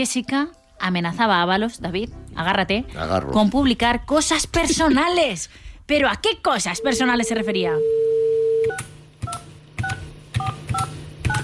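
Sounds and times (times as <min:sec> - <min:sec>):
speech: 0:00.0 - 0:08.1
dial tone: 0:06.8 - 0:08.8
phone keypad beeps: 0:06.8 - 0:11.4.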